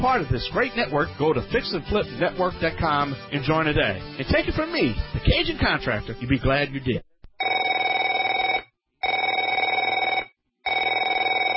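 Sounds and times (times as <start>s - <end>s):
speech: 0.0s - 7.1s
telephone ringing: 7.4s - 11.5s.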